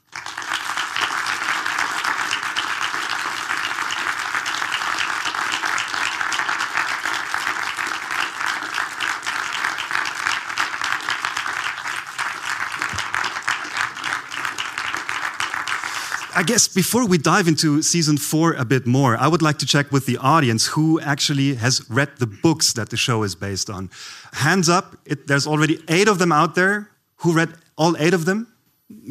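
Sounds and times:
audience applause greeting two guests onto a stage: 0.0 - 17.3
speech: 16.4 - 28.5.

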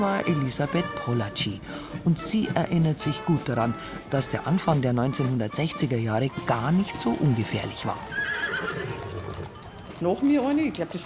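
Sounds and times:
speech: 0.0 - 9.1, 10.0 - 11.0
hooves clip-clopping: 0.0 - 11.0
horse whinnying: 7.0 - 9.7.

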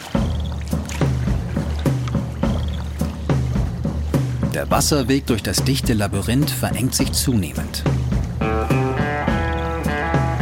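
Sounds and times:
kayak paddle dipping and pulling through water: 0.0 - 5.3, 7.8 - 10.3
speech: 4.6 - 8.1.

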